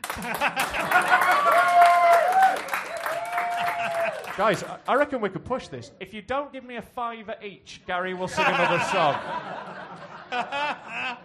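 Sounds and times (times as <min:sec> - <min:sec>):
laughter: 0:00.0 - 0:02.1, 0:03.4 - 0:04.3, 0:08.2 - 0:11.2
light scattered applause from a small audience: 0:00.0 - 0:04.8
speech: 0:00.2 - 0:01.2, 0:04.4 - 0:11.2.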